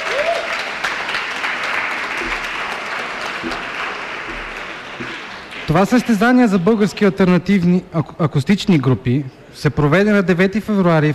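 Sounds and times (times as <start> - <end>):
audience applause: 0.0 - 6.3
speech: 5.7 - 11.1.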